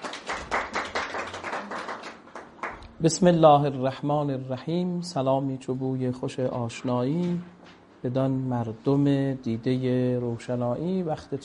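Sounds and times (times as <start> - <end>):
audience applause: 0.0 - 2.9
speech: 3.0 - 11.4.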